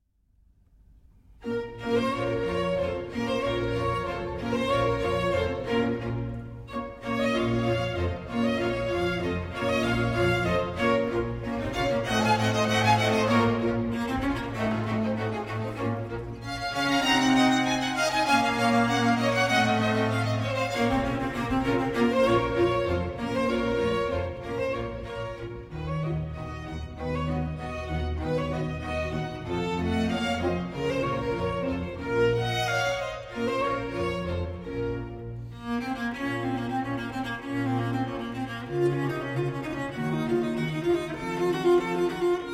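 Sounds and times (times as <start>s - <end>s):
fast cello concerto movement in B minor: 0.7s - 42.5s.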